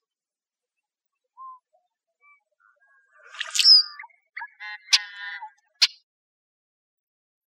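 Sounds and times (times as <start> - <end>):
icterid bird calls: 1.3 - 6.0.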